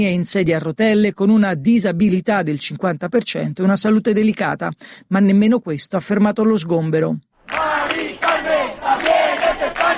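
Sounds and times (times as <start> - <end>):
speech: 0.0 - 8.0
crowd of activists shouting in protest at an eviction: 7.5 - 9.9.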